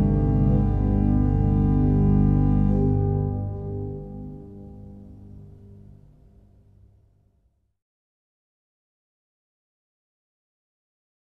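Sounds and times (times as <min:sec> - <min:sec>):
organ: 0:00.0 - 0:05.8
double bass: 0:00.0 - 0:05.9.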